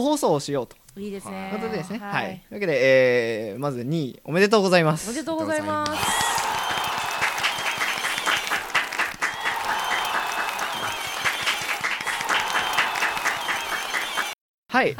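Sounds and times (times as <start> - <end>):
speech: 0.0 - 6.3, 14.8 - 14.9
applause: 5.8 - 14.4.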